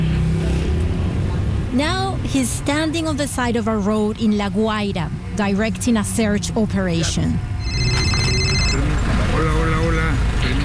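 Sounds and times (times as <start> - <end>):
outdoor street and traffic noise: 0.0 - 10.6
speech: 1.7 - 7.5
mobile phone ringing: 7.6 - 9.0.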